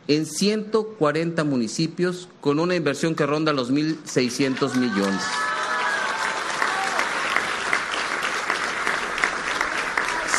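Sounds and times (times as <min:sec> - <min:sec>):
speech: 0:00.1 - 0:05.6
audience applause: 0:04.4 - 0:10.3.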